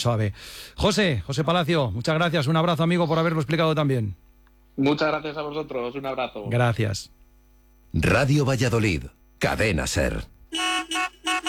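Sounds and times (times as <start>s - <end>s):
speech: 0.0s - 4.2s, 4.8s - 7.2s, 7.9s - 11.4s
car horns honking in celebration of a national victory: 10.5s - 11.4s.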